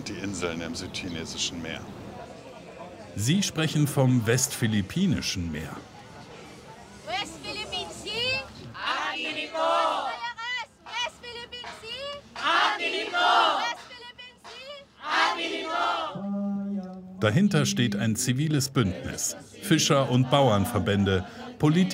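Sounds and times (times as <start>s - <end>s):
speech: 0.1s - 2.0s, 3.2s - 5.9s, 17.2s - 21.9s
crowd chanting a protest slogan: 8.6s - 11.0s, 11.6s - 16.6s, 17.2s - 21.9s.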